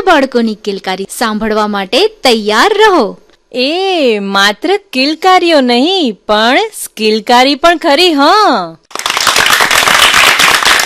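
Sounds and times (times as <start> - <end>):
speech: 0.1 - 9.0
audience clapping at a children's program: 8.9 - 10.8.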